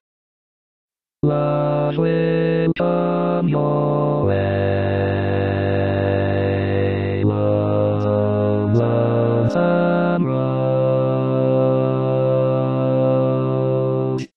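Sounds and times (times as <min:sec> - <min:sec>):
barbershop bass voice singing: 0:01.2 - 0:14.3.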